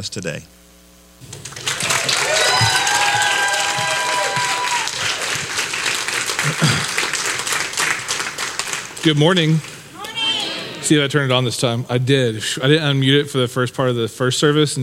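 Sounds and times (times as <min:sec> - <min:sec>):
speech: 0:00.0 - 0:01.4, 0:06.6 - 0:07.0, 0:09.0 - 0:09.7, 0:10.9 - 0:14.8
audience applause at a campus service: 0:01.2 - 0:11.2.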